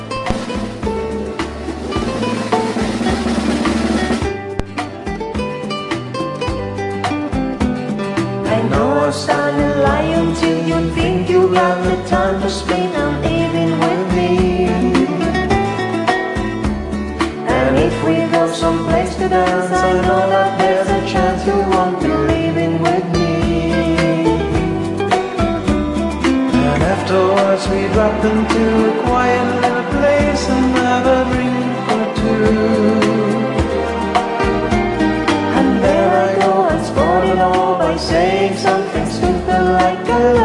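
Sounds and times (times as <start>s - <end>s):
karaoke backing track music: 0.0s - 40.4s
listener's karaoke song recording: 8.3s - 16.4s, 17.2s - 34.5s, 35.2s - 40.4s
backing vocal harmonies: 8.5s - 16.0s, 17.4s - 25.0s, 26.5s - 40.4s
speech: 11.6s - 13.2s, 27.7s - 31.5s.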